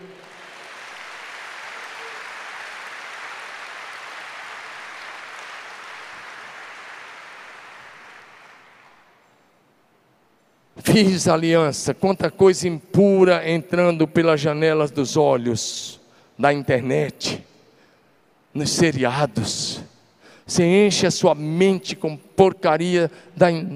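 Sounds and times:
audience applause: 0.0 - 9.2
speech: 10.8 - 17.5, 18.6 - 19.9, 20.5 - 23.7.

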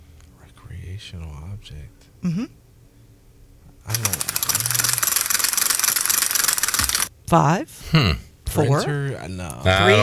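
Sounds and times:
speech: 1.0 - 2.6, 3.9 - 4.9, 7.3 - 10.0
fishing reel clicking: 4.0 - 7.1.

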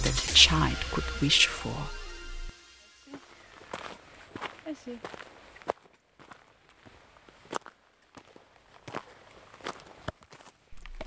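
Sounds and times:
speech: 0.4 - 2.0, 4.7 - 5.3
footsteps of hikers walking on a trail with backpacks: 3.1 - 11.0.

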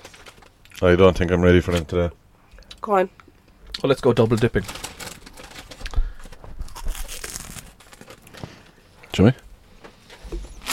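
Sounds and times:
snack crisp bag crinkling: 0.0 - 0.6, 4.2 - 8.5
speech: 0.8 - 2.2, 2.8 - 3.2, 3.8 - 4.8, 9.2 - 9.4.

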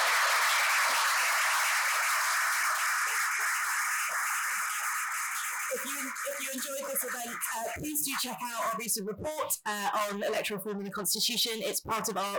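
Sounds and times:
audience applause: 0.0 - 7.5
speech: 6.4 - 12.3.

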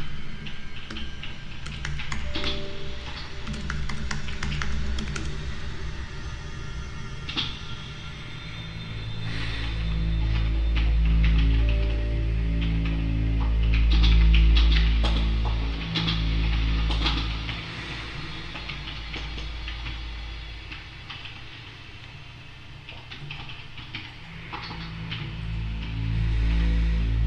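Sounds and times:
improvised music: 0.0 - 27.2
low hum: 0.0 - 27.2
steady low drone: 0.0 - 27.2
keyboard typing in a home office: 3.4 - 5.3.

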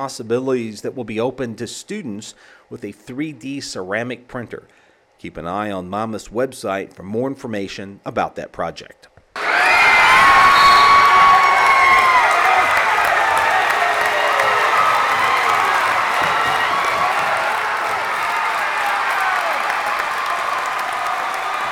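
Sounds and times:
speech: 0.0 - 9.6
basketball crowd cheering and shouting in a gymnasium: 9.4 - 21.6
scattered applause: 9.4 - 21.6.

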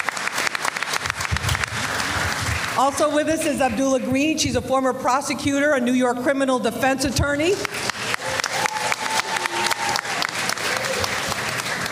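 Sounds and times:
audience applause: 0.0 - 3.0, 7.6 - 11.9
speech: 2.8 - 7.7.

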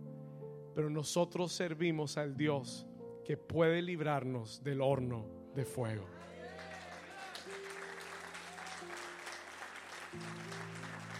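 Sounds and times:
speech: 0.8 - 6.7, 10.2 - 10.5
audience applauding: 6.2 - 11.1.

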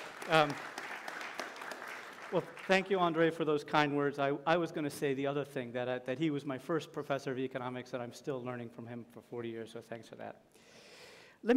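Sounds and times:
audience clapping: 0.0 - 3.4
speech: 0.3 - 0.8, 2.3 - 10.6.

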